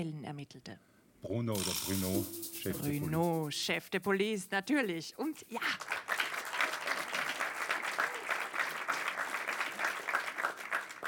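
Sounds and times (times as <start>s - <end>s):
speech: 0.0s - 5.9s
audience clapping: 5.6s - 11.0s.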